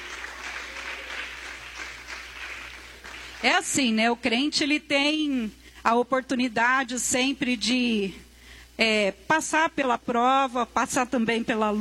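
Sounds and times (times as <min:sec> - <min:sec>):
audience clapping: 0:00.0 - 0:03.6
speech: 0:03.4 - 0:11.7.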